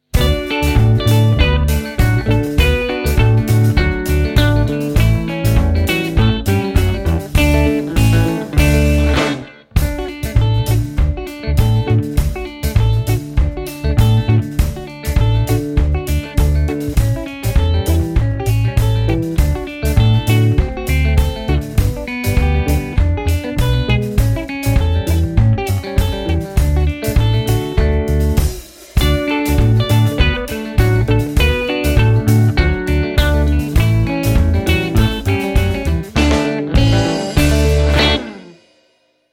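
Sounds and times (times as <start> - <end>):
instrumental music: 0.0 - 39.0.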